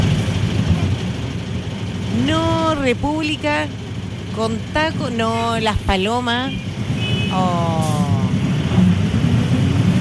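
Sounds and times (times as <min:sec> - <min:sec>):
city bus engine rumbling in the street: 0:00.0 - 0:10.0
speech: 0:02.3 - 0:03.8, 0:04.4 - 0:06.7, 0:07.3 - 0:08.0.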